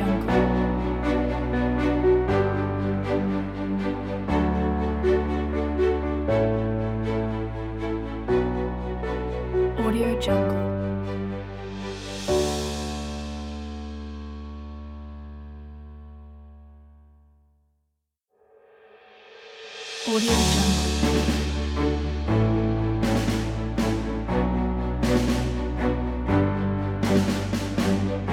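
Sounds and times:
orchestra playing: 0.0 - 14.3, 20.1 - 28.3
drum kit: 11.8 - 14.1, 19.2 - 28.3.

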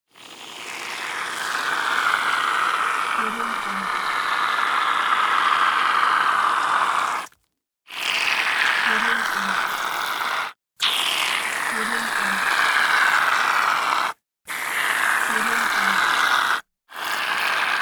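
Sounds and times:
cream being whipped: 0.1 - 17.8.

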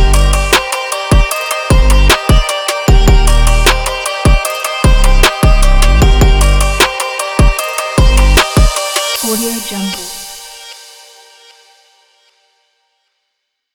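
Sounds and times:
bouncy hip hop beat: 0.0 - 11.0.

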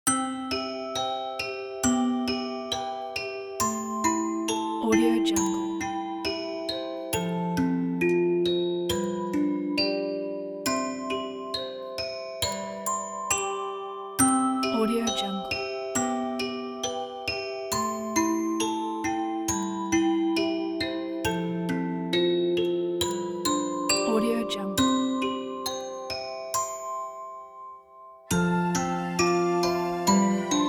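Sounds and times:
storybook fairytale music: 0.1 - 30.6.

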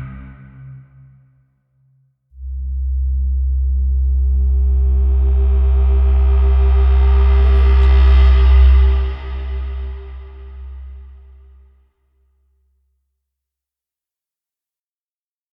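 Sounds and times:
braam: 2.4 - 11.7.

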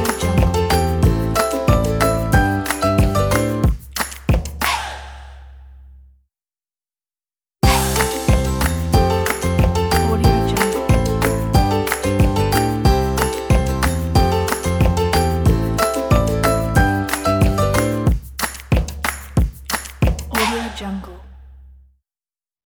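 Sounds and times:
happy upbeat folk music: 0.0 - 4.5, 7.6 - 21.0.

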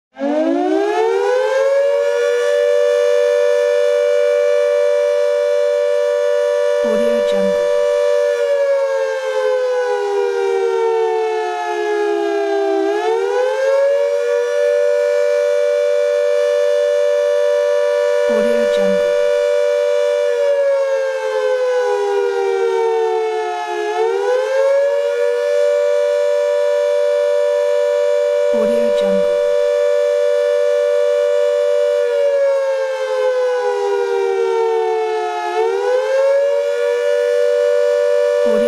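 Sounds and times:
siren: 0.1 - 38.6.

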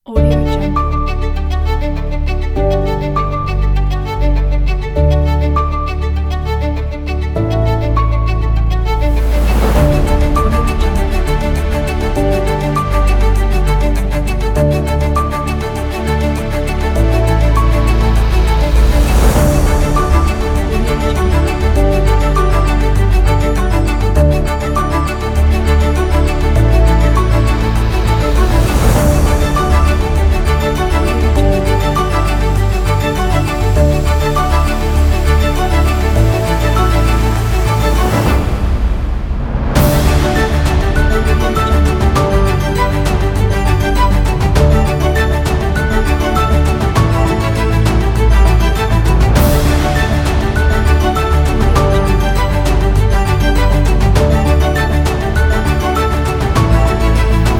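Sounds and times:
classical music: 0.0 - 57.5.

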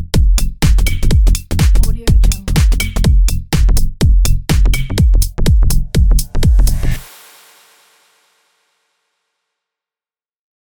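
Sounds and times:
club minimal techno: 0.0 - 7.0.

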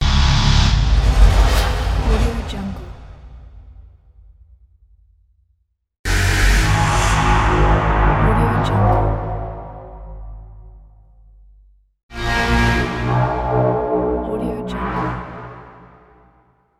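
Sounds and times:
dark horror music: 0.0 - 3.3, 6.1 - 11.3, 12.1 - 16.5.

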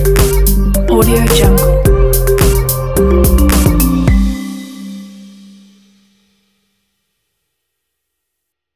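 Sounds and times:
inspirational summer travel vlog music: 0.0 - 6.1.

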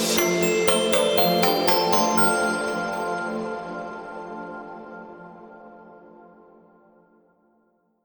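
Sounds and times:
logo jingle: 0.1 - 5.9.

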